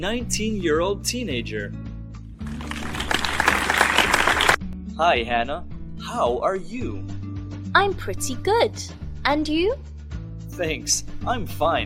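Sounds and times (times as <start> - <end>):
speech: 0.0 - 1.9, 5.0 - 9.9, 10.6 - 11.8
studio audience applause welcoming a guest on a talk show: 2.4 - 4.6.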